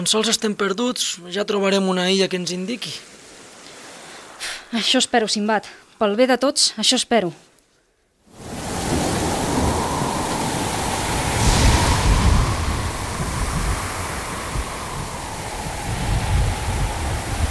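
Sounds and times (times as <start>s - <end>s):
speech: 0.0s - 3.2s, 4.7s - 7.5s
storm at sea with crashing waves: 3.0s - 4.5s, 8.3s - 17.4s.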